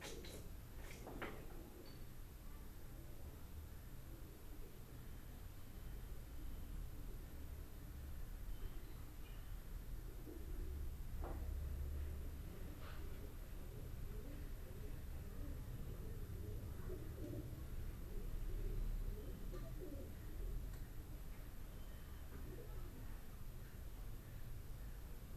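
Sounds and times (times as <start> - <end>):
pigeons in a wall in Boudha Kathmandu Nepal: 0.0 - 25.3.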